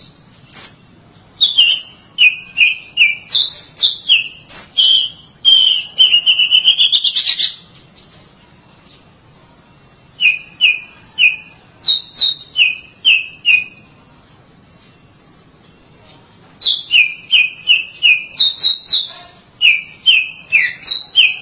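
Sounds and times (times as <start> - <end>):
Oriental magpie-robin whistled song: 0.0 - 7.7, 10.2 - 14.0, 16.6 - 21.3.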